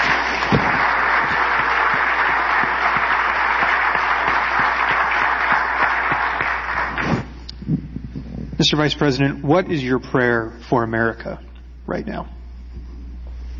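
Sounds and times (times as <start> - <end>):
audience round of applause: 0.0 - 7.4
speech: 8.6 - 12.4.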